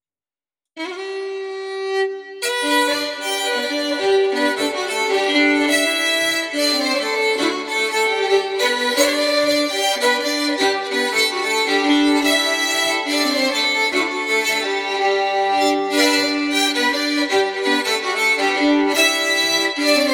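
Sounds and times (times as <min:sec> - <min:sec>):
Swedish bagpipe playing a polska: 0:00.8 - 0:20.1.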